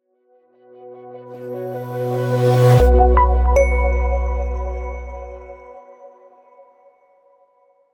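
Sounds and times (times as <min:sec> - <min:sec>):
short minimal logo jingle: 0:02.2 - 0:05.7.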